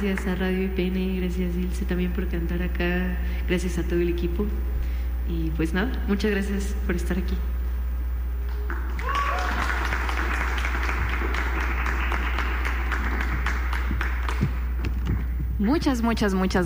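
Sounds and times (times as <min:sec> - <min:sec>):
speech: 0:00.0 - 0:07.6, 0:15.6 - 0:16.6
audience applause: 0:08.5 - 0:14.9.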